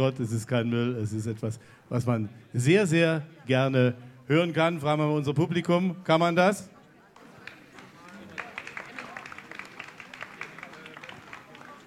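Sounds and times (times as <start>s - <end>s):
speech: 0.0s - 6.7s
audience applause: 7.2s - 11.8s.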